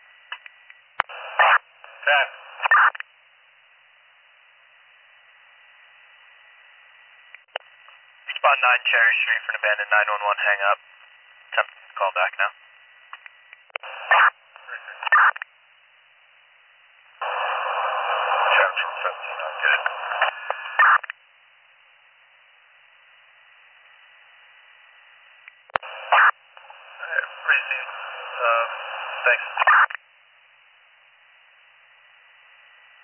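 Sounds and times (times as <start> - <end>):
crackly radio transmissions with static and garbled voice: 1.0 - 3.1, 8.2 - 15.5, 17.2 - 21.2, 25.7 - 30.1
speech: 2.1 - 2.4, 8.5 - 11.0, 12.0 - 12.6.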